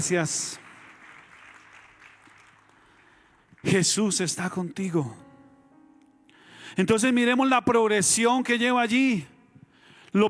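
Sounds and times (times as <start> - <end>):
speech: 0.0 - 0.6, 3.6 - 5.3, 6.7 - 9.4
crowd applause: 0.0 - 4.0.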